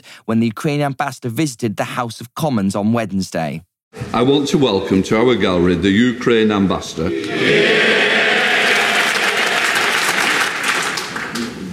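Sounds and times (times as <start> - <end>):
speech: 0.1 - 7.9
applause in parliamentary chamber: 8.2 - 11.7.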